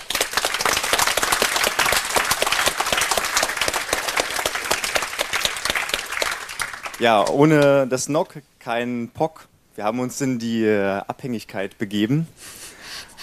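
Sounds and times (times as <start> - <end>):
audience applause: 0.0 - 7.7
speech: 7.0 - 12.6.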